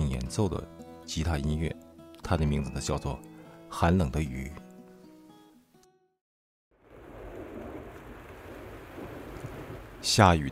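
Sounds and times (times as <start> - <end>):
speech: 0.3 - 4.6, 10.0 - 10.5
distant thunder: 6.8 - 10.5.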